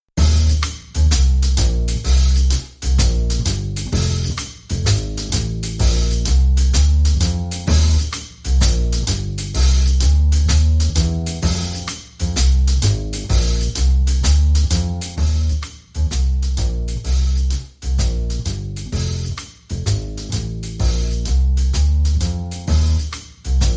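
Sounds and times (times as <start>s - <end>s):
drum and bass music: 0.0s - 23.7s.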